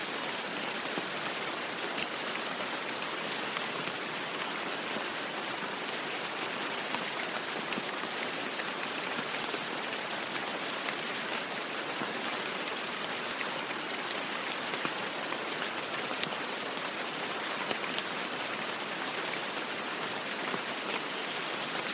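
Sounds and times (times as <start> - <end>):
steady rain: 0.0 - 21.9.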